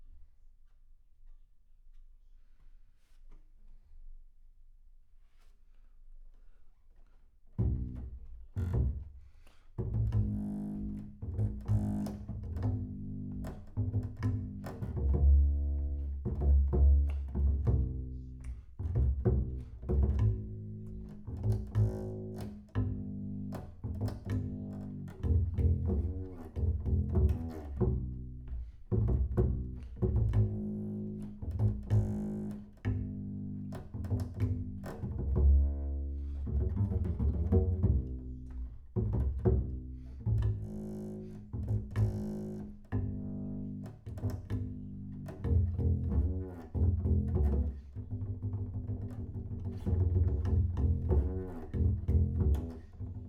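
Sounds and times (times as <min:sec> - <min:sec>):
bass sound: 0:09.9 - 0:53.2.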